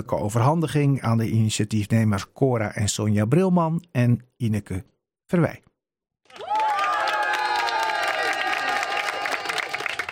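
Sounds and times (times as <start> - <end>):
speech: 0.0 - 5.7
crowd applauding: 6.3 - 10.1.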